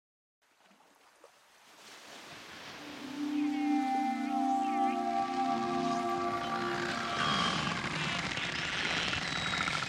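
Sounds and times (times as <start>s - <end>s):
narwhal underwater vocalizations: 2.8s - 8.6s
high wavering narwhal whistles: 2.8s - 9.4s.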